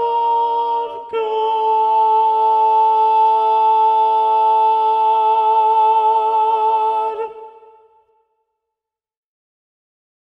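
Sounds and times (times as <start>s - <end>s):
second alto voice singing: 0.0s - 8.1s.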